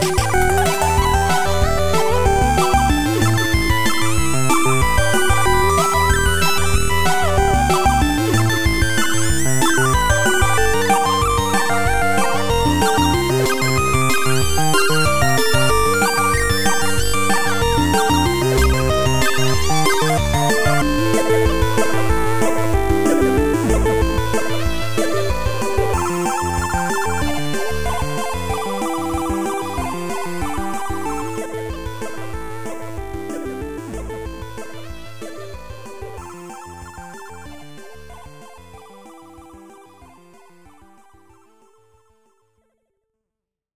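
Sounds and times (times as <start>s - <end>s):
8bit chiptune music: 0.0s - 41.8s.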